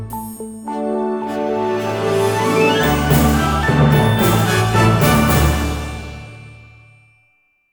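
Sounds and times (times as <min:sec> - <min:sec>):
fireworks music: 0:00.8 - 0:07.0.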